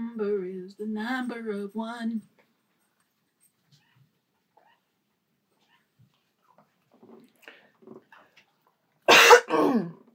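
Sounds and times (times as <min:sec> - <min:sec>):
speech: 0:00.2 - 0:02.4, 0:09.7 - 0:10.0
phlegmy cough: 0:09.1 - 0:10.0
rough gravelly throat clearing: 0:09.1 - 0:10.0.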